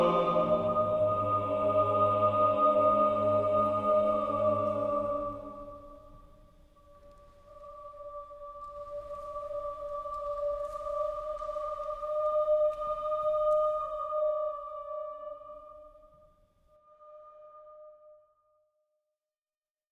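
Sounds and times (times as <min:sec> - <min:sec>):
choir singing: 0:00.0 - 0:06.2, 0:06.9 - 0:16.0.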